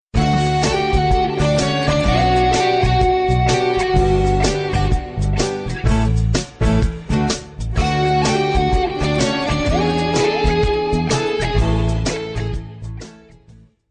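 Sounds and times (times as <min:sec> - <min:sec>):
instrumental Telugu ringtone background music: 0:00.2 - 0:13.8.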